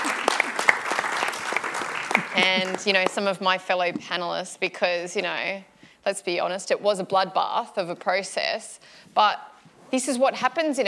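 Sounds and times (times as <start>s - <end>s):
audience applause: 0.0s - 3.1s
speech: 2.2s - 10.8s.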